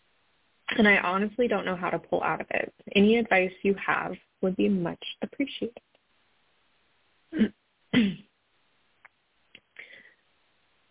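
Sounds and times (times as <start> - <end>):
speech: 0.7 - 5.9, 7.3 - 8.3
person coughing: 7.4 - 8.3.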